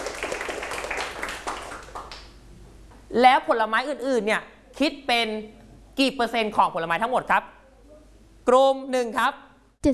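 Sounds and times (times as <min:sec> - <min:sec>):
classroom clapping: 0:00.0 - 0:02.4
speech: 0:03.1 - 0:07.5, 0:08.5 - 0:09.9.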